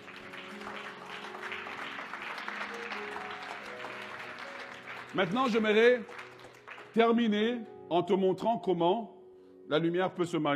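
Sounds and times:
congregation applause during a church sermon: 0:00.0 - 0:07.6
speech: 0:05.1 - 0:06.2, 0:06.9 - 0:10.5.

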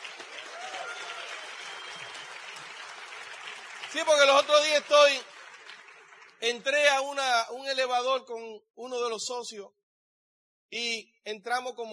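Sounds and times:
audience applause: 0:00.0 - 0:06.7
speech: 0:03.9 - 0:05.3, 0:06.4 - 0:09.8, 0:10.7 - 0:11.9.

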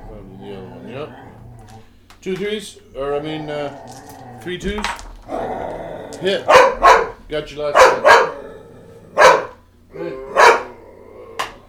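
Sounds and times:
dog whining or growling: 0:00.0 - 0:02.0, 0:02.7 - 0:06.9, 0:08.0 - 0:09.3, 0:09.9 - 0:11.6
speech: 0:02.2 - 0:08.3
dog yelping: 0:06.4 - 0:07.2, 0:07.8 - 0:08.5, 0:09.2 - 0:09.6, 0:10.2 - 0:10.8
dog barking: 0:06.4 - 0:08.4, 0:09.2 - 0:09.6, 0:10.3 - 0:10.8.

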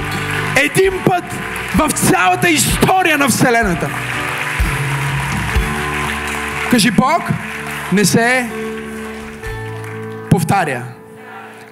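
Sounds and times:
audience applause: 0:00.0 - 0:10.4
speech: 0:00.6 - 0:04.3, 0:06.7 - 0:08.6, 0:10.4 - 0:11.0.

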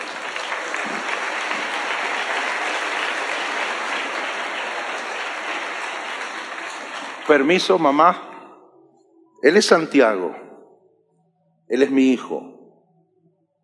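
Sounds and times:
audience applause: 0:00.0 - 0:08.2
speech: 0:07.3 - 0:08.3, 0:09.4 - 0:10.5, 0:11.7 - 0:12.5.

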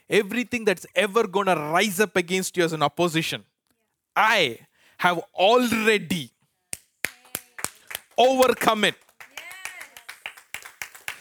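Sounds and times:
speech: 0:00.1 - 0:03.5, 0:04.2 - 0:06.4, 0:08.2 - 0:09.0
audience clapping: 0:07.0 - 0:11.2.

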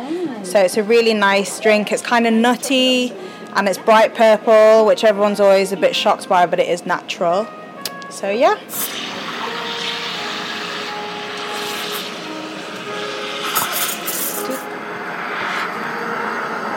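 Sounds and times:
speech: 0:00.4 - 0:09.0
steam wand steaming milk: 0:08.7 - 0:16.7.

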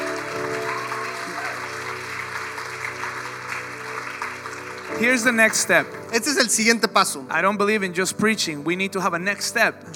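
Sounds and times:
audience loud applause: 0:00.0 - 0:06.2
speech: 0:05.0 - 0:09.9.

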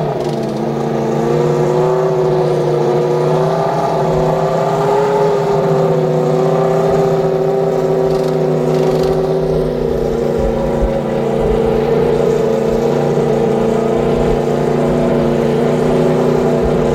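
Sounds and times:
IndyCar engine drone at Fontana: 0:00.0 - 0:16.9.

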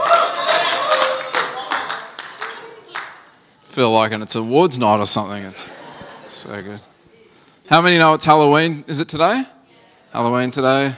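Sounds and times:
audience clapping: 0:00.0 - 0:03.4
speech: 0:03.8 - 0:05.8, 0:06.4 - 0:06.9, 0:07.7 - 0:10.9
laughter: 0:05.4 - 0:06.9.

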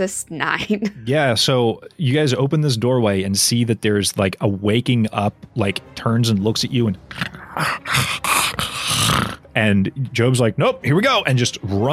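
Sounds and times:
speech: 0:00.0 - 0:08.3, 0:09.6 - 0:11.9
mutated cat growling: 0:07.1 - 0:09.5.

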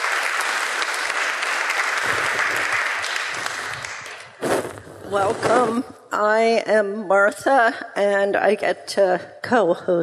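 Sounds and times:
audience applause: 0:00.0 - 0:04.4
speech: 0:05.1 - 0:10.0.

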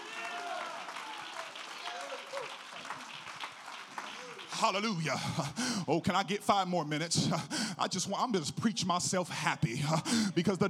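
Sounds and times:
audience clapping hands: 0:00.0 - 0:06.7
speech: 0:04.6 - 0:10.6.

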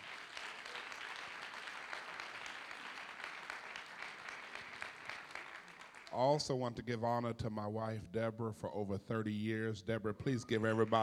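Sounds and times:
audience applause: 0:00.0 - 0:06.2
speech: 0:06.2 - 0:11.0.

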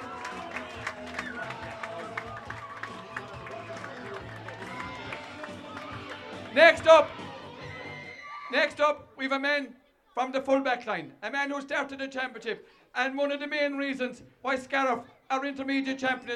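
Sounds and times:
crowd clapping: 0:00.0 - 0:07.8
crowd cheering: 0:00.0 - 0:08.8
speech: 0:06.6 - 0:07.2, 0:08.6 - 0:16.3.

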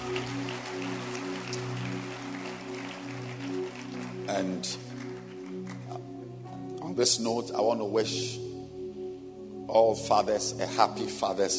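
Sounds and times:
audience clapping hands: 0:00.0 - 0:06.2
speech: 0:04.3 - 0:04.9, 0:07.0 - 0:08.5, 0:09.7 - 0:11.5.

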